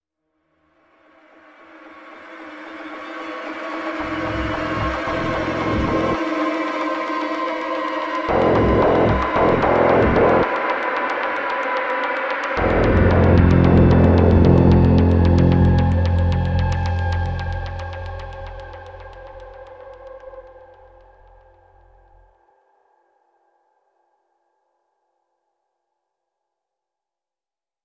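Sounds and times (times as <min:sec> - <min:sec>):
suspense music: 0:02.0 - 0:22.2.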